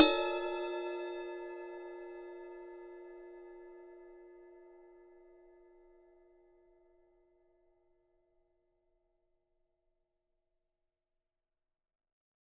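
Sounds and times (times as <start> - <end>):
51cm ride cymbal: 0.0 - 2.1.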